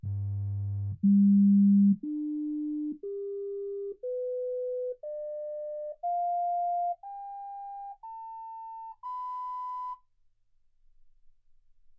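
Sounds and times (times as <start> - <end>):
sine tones: 1.0 - 10.0.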